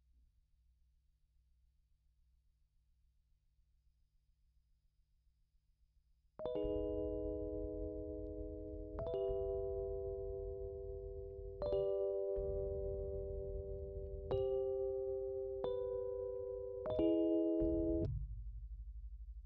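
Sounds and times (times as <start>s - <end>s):
Rhodes electric piano: 6.4s - 18.1s.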